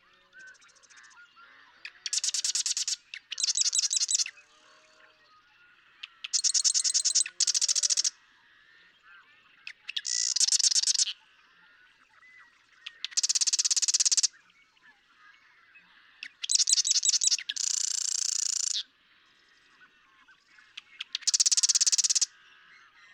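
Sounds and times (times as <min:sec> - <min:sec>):
marsh wren singing buzzy trills: 0:01.9 - 0:08.2, 0:09.6 - 0:11.2, 0:12.9 - 0:14.3, 0:16.2 - 0:18.8, 0:20.5 - 0:22.4.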